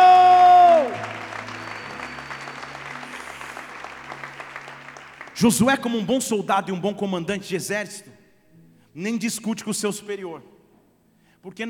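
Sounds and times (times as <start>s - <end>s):
audience applause: 0.0s - 6.0s
speech: 5.4s - 8.1s, 9.0s - 10.5s, 11.4s - 11.6s.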